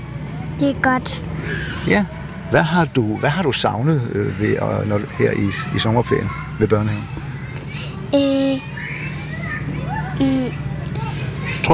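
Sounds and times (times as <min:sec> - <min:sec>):
babble of young voices at a kindergarten: 0:00.0 - 0:11.7
children shouting and calling while playing outdoors at a kindergarten: 0:00.0 - 0:11.7
speech: 0:00.6 - 0:08.7, 0:10.2 - 0:10.6
child's drawn-out cry: 0:04.8 - 0:11.6.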